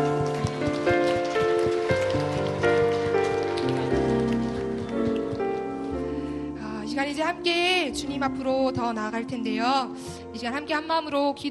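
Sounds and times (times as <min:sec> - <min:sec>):
crowd clapping: 0:00.0 - 0:06.0
speech: 0:07.3 - 0:11.4.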